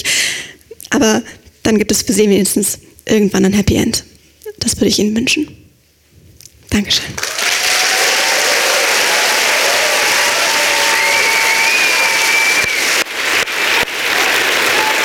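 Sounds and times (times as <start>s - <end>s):
speech: 1.0s - 5.6s, 6.7s - 7.3s
crowd applause: 7.2s - 15.0s
faint cheers and whistles: 7.2s - 15.0s.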